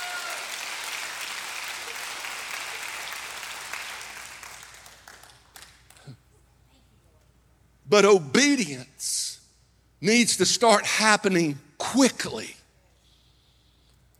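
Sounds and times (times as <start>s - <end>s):
audience clapping hands in praise: 0.0s - 6.2s
speech: 7.9s - 9.3s, 10.0s - 12.6s.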